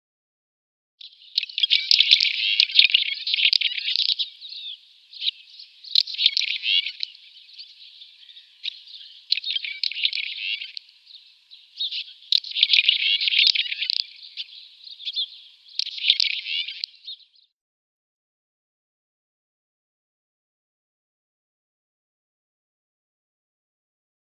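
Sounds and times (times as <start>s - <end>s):
red-rumped swallow chirps and scratchy twittering warble: 1.0s - 17.3s.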